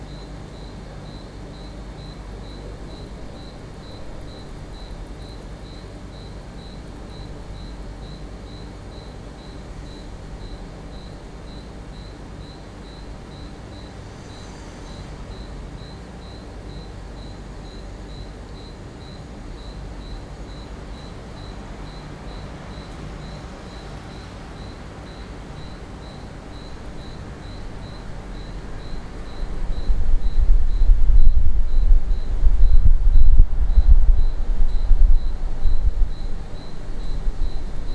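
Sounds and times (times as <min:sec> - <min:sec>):
crickets chirping at night from a balcony: 0:00.0 - 0:37.9.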